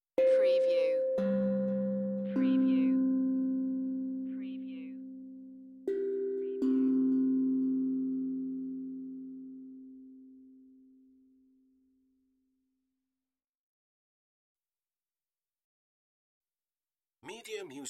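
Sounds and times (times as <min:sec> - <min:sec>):
meditative tongue drum tone: 0:00.0 - 0:10.9.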